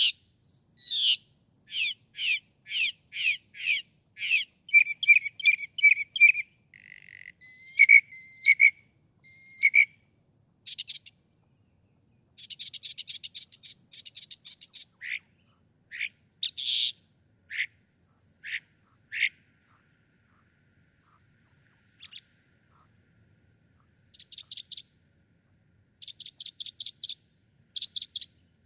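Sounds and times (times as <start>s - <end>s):
steady hiss: 0.0s - 28.6s
Northern mockingbird singing: 0.8s - 10.0s, 12.4s - 19.8s, 21.0s - 22.9s, 23.9s - 25.0s, 26.0s - 28.4s.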